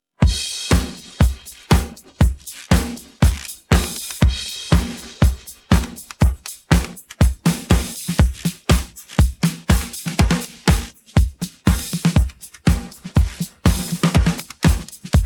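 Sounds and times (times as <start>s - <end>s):
drum pattern: 0.2s - 15.2s.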